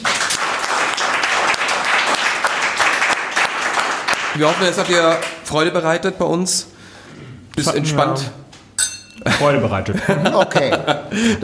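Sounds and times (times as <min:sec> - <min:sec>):
audience applause: 0:00.0 - 0:05.4
speech: 0:04.4 - 0:08.4, 0:09.2 - 0:11.4
laughter: 0:09.2 - 0:11.4.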